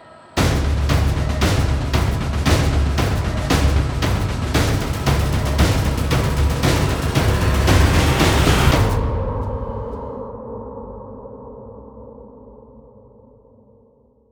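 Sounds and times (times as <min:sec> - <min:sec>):
musical thud: 0:00.4 - 0:10.3.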